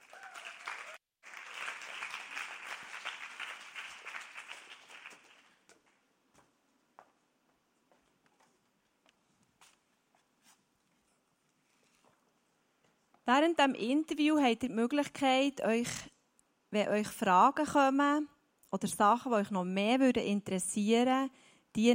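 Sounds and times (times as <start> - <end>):
audience applause: 0.0 - 5.7
speech: 13.3 - 16.1, 16.7 - 21.9.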